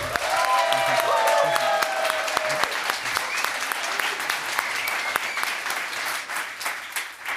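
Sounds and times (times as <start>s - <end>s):
crowd clapping: 0.0s - 7.3s
whistling cheers: 0.1s - 5.8s.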